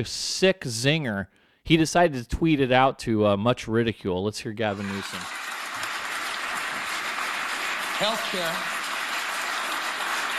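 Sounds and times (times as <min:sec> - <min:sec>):
speech: 0:00.0 - 0:05.4, 0:08.0 - 0:08.8
steady dense applause from a crowd: 0:04.7 - 0:10.3.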